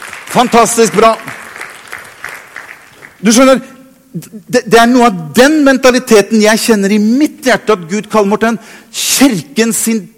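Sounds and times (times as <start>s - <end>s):
audience applause: 0.0s - 3.2s
speech: 0.3s - 1.4s, 3.2s - 10.1s.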